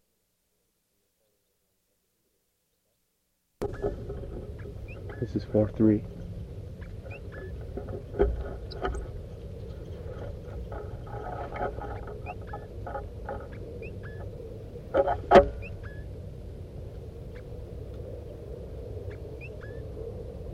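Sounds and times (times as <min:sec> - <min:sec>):
speech: 0:03.6 - 0:04.1, 0:05.2 - 0:06.2
wild birds chittering: 0:03.6 - 0:16.4, 0:17.0 - 0:20.1.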